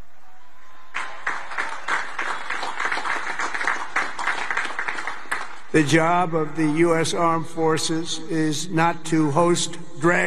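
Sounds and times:
delayed, hesitant applause from an audience: 0:00.9 - 0:05.7
speech: 0:05.7 - 0:10.2.

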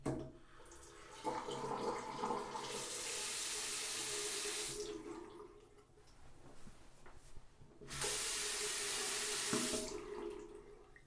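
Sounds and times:
water running from a bathroom sink tap: 0:00.0 - 0:05.6, 0:07.9 - 0:11.0.

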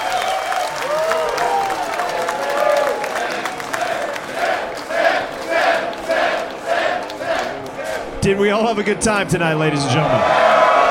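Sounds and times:
crowd cheering and whooping: 0:00.0 - 0:04.0, 0:09.9 - 0:10.8
crowd applauding: 0:00.0 - 0:08.2
speech: 0:08.2 - 0:10.4.

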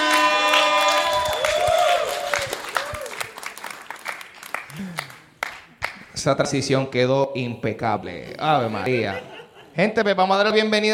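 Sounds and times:
crowd voices and whoops: 0:00.0 - 0:03.4
audience applause: 0:00.0 - 0:06.0
speech: 0:06.2 - 0:10.9
laughter: 0:08.2 - 0:10.9.

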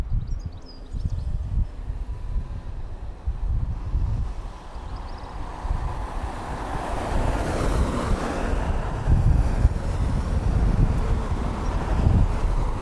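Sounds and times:
birds at a bus stop: 0:00.0 - 0:01.5
traffic at a bus stop: 0:00.0 - 0:12.8.

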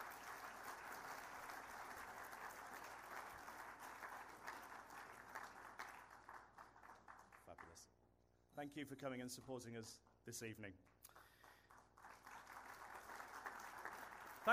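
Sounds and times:
audience applause: 0:00.0 - 0:07.8, 0:11.2 - 0:14.5
speech: 0:08.6 - 0:10.9.

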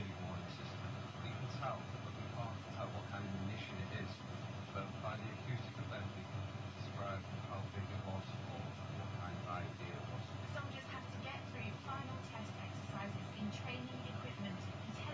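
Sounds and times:
interference: 0:00.0 - 0:15.1.

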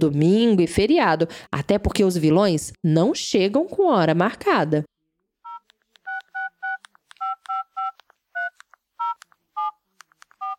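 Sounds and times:
speech: 0:00.0 - 0:04.9
telephone keypad tones dialing a number: 0:05.4 - 0:10.5
clicks: 0:05.5 - 0:10.5.

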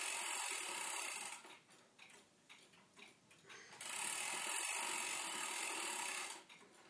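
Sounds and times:
weight-driven clock winding mechanism ratcheting: 0:00.0 - 0:01.5, 0:03.8 - 0:06.6
faint clock ticks: 0:00.0 - 0:06.8.

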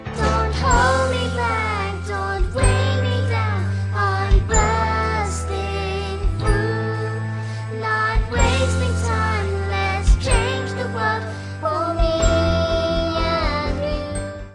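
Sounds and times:
primary school children singing: 0:00.1 - 0:13.9.

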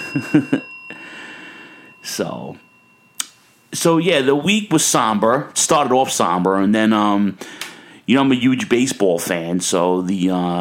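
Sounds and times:
bell being rung: 0:00.0 - 0:05.6
speech: 0:00.1 - 0:00.7, 0:02.0 - 0:02.7, 0:03.7 - 0:10.5
breathy gasps and vocal sounds: 0:00.9 - 0:02.0, 0:07.4 - 0:08.1.

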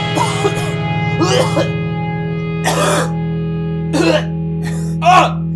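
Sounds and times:
coughing: 0:00.1 - 0:01.8, 0:02.6 - 0:03.2, 0:03.9 - 0:05.4.

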